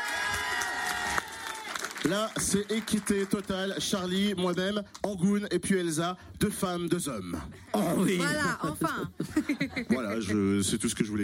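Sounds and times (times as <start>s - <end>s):
studio audience applause: 0.0s - 4.0s
speech: 2.0s - 11.2s
laughter: 8.1s - 10.6s.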